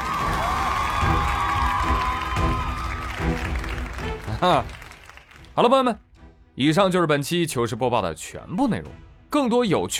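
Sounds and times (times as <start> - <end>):
applause and cheering: 0.0 - 6.0
speech: 4.4 - 4.8, 5.6 - 6.0, 6.6 - 9.9.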